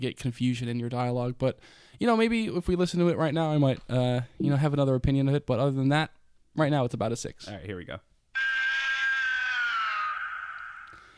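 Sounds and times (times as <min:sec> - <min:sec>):
speech: 0:00.0 - 0:08.6
high-pitched kaiju monster roar with reverb: 0:08.4 - 0:11.0.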